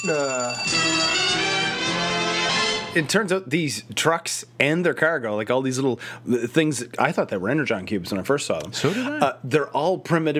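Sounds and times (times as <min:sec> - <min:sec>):
speech: 0:00.0 - 0:00.9, 0:02.9 - 0:10.3
mobile phone ringing with bright electronic ringtone: 0:00.0 - 0:02.9.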